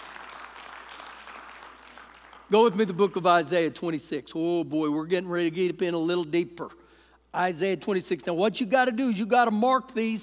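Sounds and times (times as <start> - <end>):
audience clapping: 0.0 - 2.8
speech: 2.5 - 10.2.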